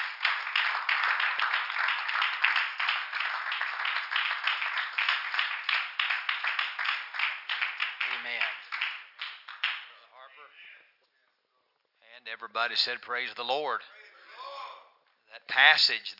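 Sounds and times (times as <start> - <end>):
crowd clapping: 0.0 - 10.0
speech: 12.3 - 14.0, 15.6 - 16.1.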